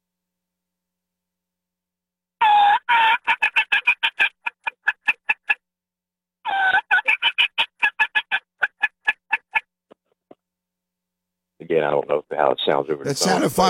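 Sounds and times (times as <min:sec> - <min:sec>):
turkey call growl and soft cutting: 0:02.4 - 0:05.6, 0:06.4 - 0:09.7
speech: 0:11.8 - 0:13.6.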